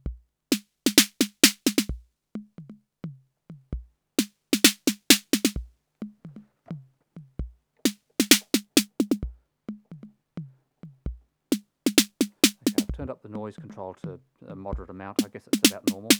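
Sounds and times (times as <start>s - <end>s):
TR-606 drum machine noise snare: 0.5s - 1.9s, 4.2s - 5.6s, 7.9s - 9.2s, 11.5s - 12.9s, 15.2s - 16.1s.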